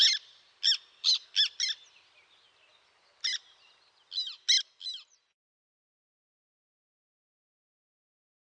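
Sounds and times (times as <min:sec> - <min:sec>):
black tern giving chattering calls: 0:00.0 - 0:01.9, 0:03.2 - 0:05.2.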